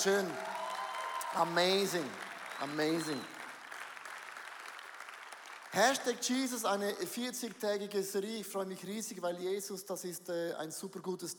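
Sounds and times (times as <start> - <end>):
speech: 0.0 - 0.5, 1.3 - 3.4, 5.7 - 11.3
audience applause: 0.0 - 6.6.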